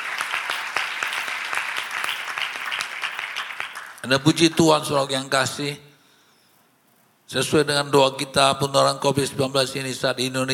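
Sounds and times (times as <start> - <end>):
audience applause: 0.0 - 4.1
speech: 4.0 - 5.9, 7.3 - 10.5.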